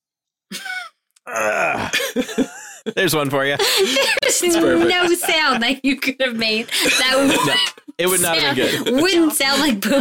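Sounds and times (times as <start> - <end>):
vocal grunts: 1.2 - 2.0
speech: 1.3 - 10.0
laughter: 2.0 - 5.9, 6.5 - 10.0.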